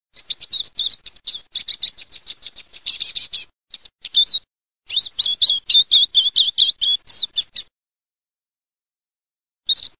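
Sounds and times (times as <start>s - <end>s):
Eurasian siskin singing: 0.2s - 7.7s.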